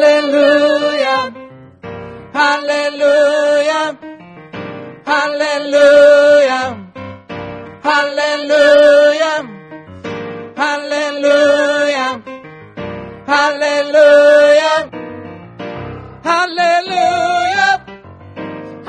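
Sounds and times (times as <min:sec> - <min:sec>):
tenor singing: 0:00.0 - 0:01.4, 0:02.4 - 0:04.0, 0:05.1 - 0:06.9, 0:07.8 - 0:09.6, 0:10.6 - 0:12.3, 0:13.3 - 0:14.9, 0:16.1 - 0:17.9.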